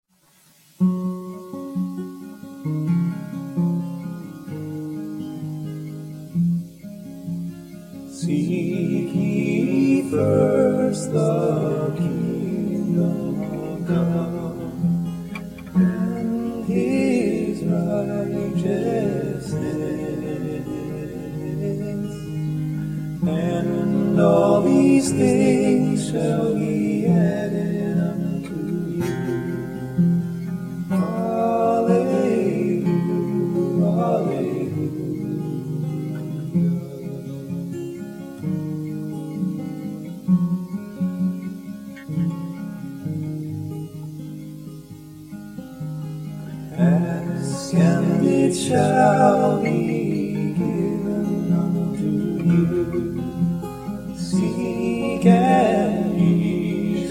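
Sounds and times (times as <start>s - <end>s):
guitars: 0.1s - 57.0s
two voices: 7.4s - 37.7s, 46.2s - 57.0s.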